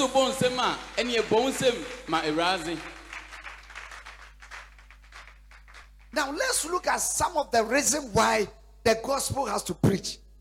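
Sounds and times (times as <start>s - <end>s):
speech: 0.0s - 3.0s, 6.1s - 10.2s
audience clapping: 0.0s - 6.5s.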